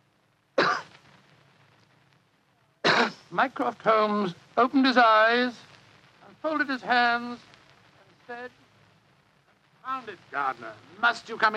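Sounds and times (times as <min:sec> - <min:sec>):
discreet cough: 0:00.6 - 0:00.9, 0:02.8 - 0:03.3
speech: 0:03.3 - 0:05.6, 0:06.4 - 0:07.5, 0:08.3 - 0:08.6, 0:09.8 - 0:11.5.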